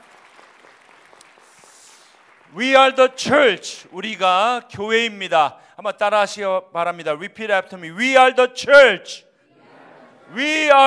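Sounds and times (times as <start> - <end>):
crowd applause: 0.0 - 2.7
speech: 2.5 - 9.3, 10.3 - 10.8.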